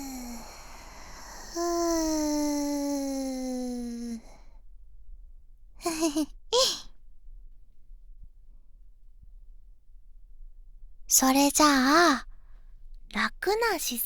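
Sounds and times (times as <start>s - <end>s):
deep exhale during a guided relaxation breathing exercise: 0.0s - 4.4s
speech: 11.2s - 12.3s, 13.2s - 14.0s.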